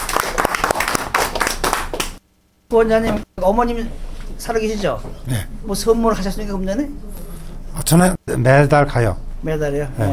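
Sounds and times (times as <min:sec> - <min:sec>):
audience applause: 0:00.0 - 0:02.2
speech: 0:02.7 - 0:07.1, 0:07.8 - 0:10.1.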